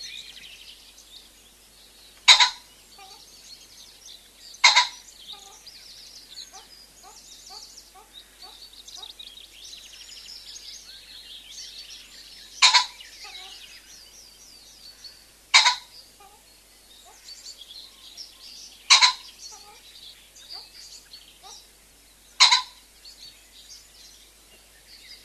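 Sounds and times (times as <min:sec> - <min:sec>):
common pheasant crowing: 0:02.2 - 0:03.3, 0:04.6 - 0:09.2, 0:12.5 - 0:13.8, 0:15.0 - 0:17.3, 0:18.8 - 0:19.9, 0:20.5 - 0:20.8, 0:21.4 - 0:21.7, 0:22.4 - 0:22.9.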